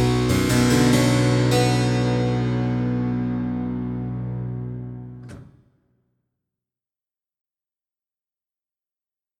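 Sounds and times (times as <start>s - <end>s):
harpsichord: 0.0s - 5.2s.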